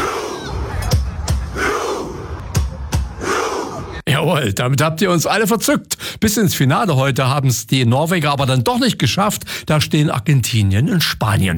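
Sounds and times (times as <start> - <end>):
crowd of fans shouting in a Viking war chant: 0.0 - 4.0
speech: 4.2 - 11.5.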